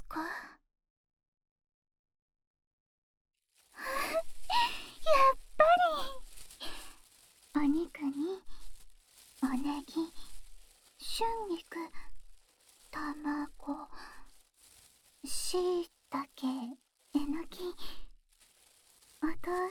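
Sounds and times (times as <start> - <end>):
cooking sounds: 3.7 - 17.7.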